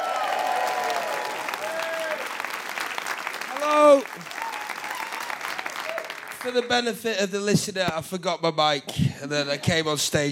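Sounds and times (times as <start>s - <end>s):
audience applause welcoming a comedian onto a stage: 0.0s - 6.9s
speech: 6.4s - 10.2s.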